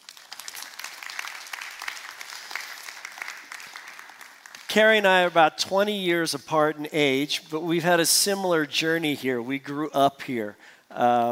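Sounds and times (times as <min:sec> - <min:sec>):
crowd applauding: 0:00.0 - 0:05.3
speech: 0:04.7 - 0:11.3.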